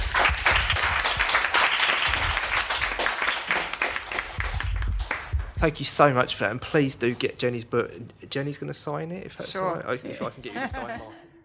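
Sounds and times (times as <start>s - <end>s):
audience round of applause: 0.0s - 5.6s
speech: 5.6s - 11.2s
laughter: 9.9s - 11.4s.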